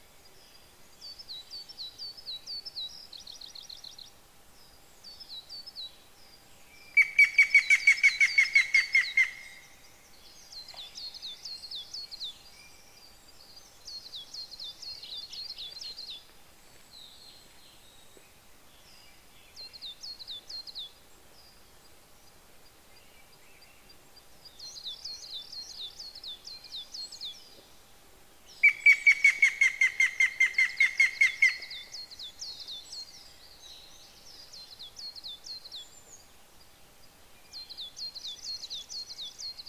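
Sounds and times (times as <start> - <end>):
yamagera bird calling: 6.9 - 9.6, 28.6 - 32.3.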